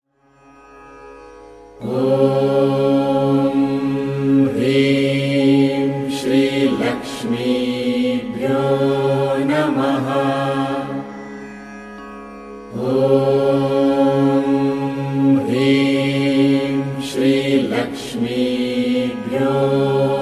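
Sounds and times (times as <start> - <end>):
mantra chanting: 1.8 - 11.1, 12.7 - 20.2.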